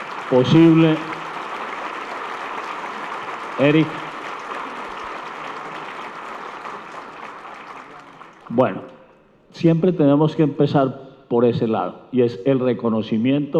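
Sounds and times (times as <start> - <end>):
audience applause: 0.0 - 9.2
speech: 0.3 - 1.1, 3.6 - 4.0, 8.5 - 8.9, 9.6 - 13.5.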